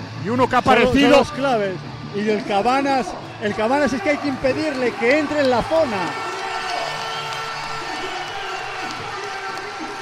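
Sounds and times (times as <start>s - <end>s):
speech: 0.2s - 6.2s
large crowd cheering in the Pumarín basketball arena: 2.4s - 9.9s
whoops and shouts from basketball crowd: 5.7s - 9.9s.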